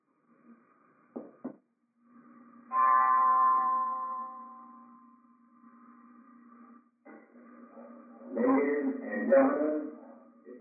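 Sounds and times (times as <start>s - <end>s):
signal or alarm bell ringing: 2.7s - 4.9s
speech: 9.3s - 9.7s.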